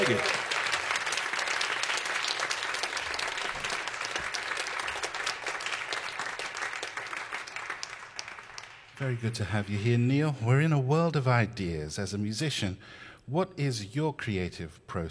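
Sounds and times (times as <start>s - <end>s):
audience applause welcoming a pianist: 0.0s - 9.3s
speech: 0.1s - 0.3s, 9.0s - 15.0s.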